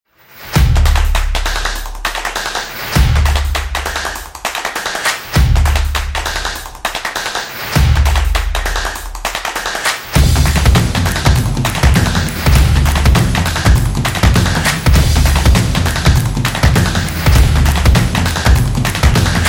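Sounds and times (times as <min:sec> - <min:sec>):
fast beat: 0:00.5 - 0:19.4.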